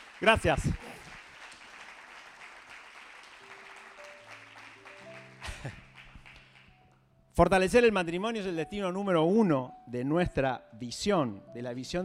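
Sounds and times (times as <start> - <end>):
audience applause: 0.0 - 6.9
speech: 0.2 - 0.9, 7.4 - 12.0.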